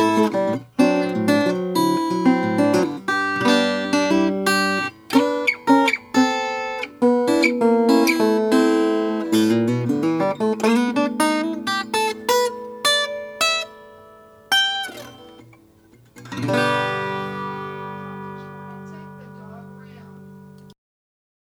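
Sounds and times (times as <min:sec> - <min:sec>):
Gibson Kalamazoo KG 12 brown sunburst acoustic guitar: 0:00.0 - 0:20.8.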